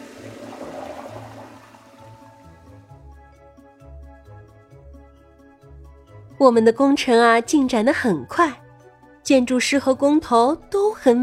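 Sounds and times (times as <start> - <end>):
toilet flushing outside a construction workers' shed: 0.0 - 3.0
speech: 6.4 - 8.6, 9.3 - 11.2.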